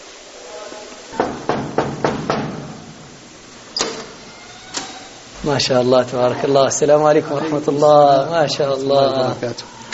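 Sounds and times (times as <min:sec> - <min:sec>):
knocking on a door: 0:01.2 - 0:02.8
speech: 0:05.4 - 0:09.7.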